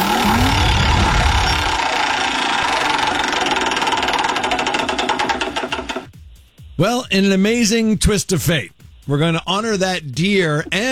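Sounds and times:
prize wheel spinning: 0.0s - 6.1s
speech: 6.8s - 10.9s.

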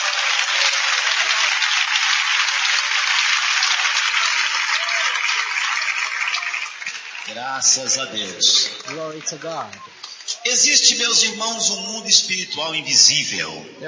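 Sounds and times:
audience clapping: 0.0s - 10.5s
speech: 7.4s - 13.8s.

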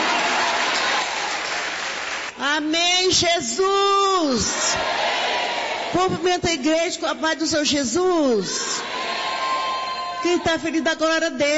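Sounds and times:
church audience applause: 0.0s - 2.4s
speech: 2.5s - 9.0s, 10.2s - 11.5s.

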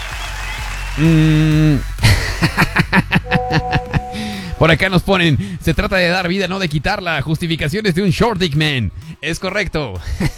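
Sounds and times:
applause: 0.0s - 1.3s
speech: 1.0s - 3.1s, 4.6s - 10.3s
laughter: 2.0s - 4.5s.

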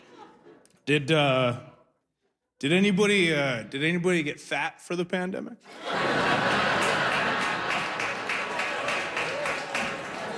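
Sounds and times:
laughter: 0.0s - 0.8s, 5.7s - 10.3s
speech: 0.9s - 1.7s, 2.6s - 6.6s
enthusiastic clapping from audience member: 7.1s - 10.3s.

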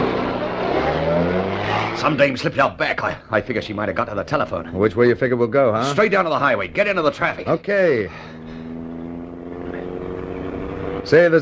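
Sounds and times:
motorbike engine coming up behind a car heading for the highway: 0.0s - 2.6s, 6.7s - 11.3s
speech: 2.0s - 8.6s, 11.0s - 11.3s.

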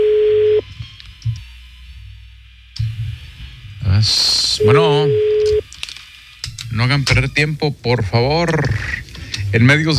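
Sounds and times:
telephone ringing unanswered: 0.0s - 0.6s, 4.6s - 5.6s
speech: 4.0s - 5.2s, 6.8s - 9.9s.

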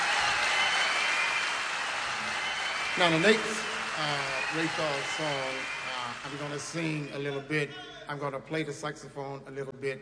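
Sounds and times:
big band concert audience applause: 0.0s - 7.1s
speech: 3.0s - 10.0s.

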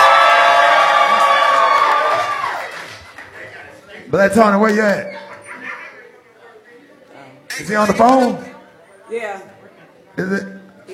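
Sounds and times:
audience cheering and whooping: 0.0s - 3.0s
speech: 4.1s - 5.3s, 7.6s - 8.5s, 9.1s - 9.6s, 10.2s - 10.9s.

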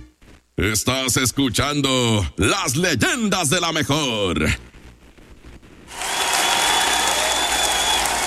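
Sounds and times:
speech: 0.6s - 4.7s
audience applause: 5.9s - 8.2s.

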